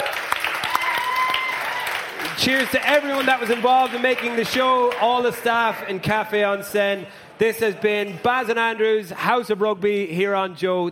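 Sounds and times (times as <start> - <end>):
live audience applause: 0.0 - 5.8
speech: 2.4 - 10.8.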